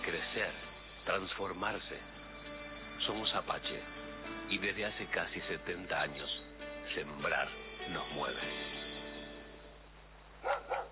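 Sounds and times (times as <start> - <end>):
speech: 0.1 - 2.2, 3.1 - 8.9
guard dog barking: 10.4 - 10.9.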